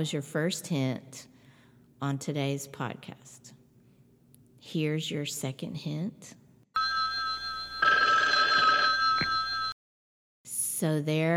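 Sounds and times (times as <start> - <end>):
speech: 0.0 - 1.3, 2.0 - 3.6, 4.6 - 6.4, 10.8 - 11.3
telephone ringing with an electronic trill: 6.8 - 9.8.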